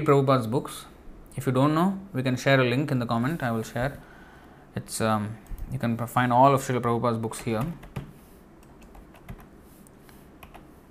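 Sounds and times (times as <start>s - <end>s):
speech: 0.0s - 4.1s, 4.7s - 8.0s
hiss: 0.0s - 10.8s
computer keyboard typing as a web link is entered: 7.4s - 9.5s, 10.4s - 10.7s.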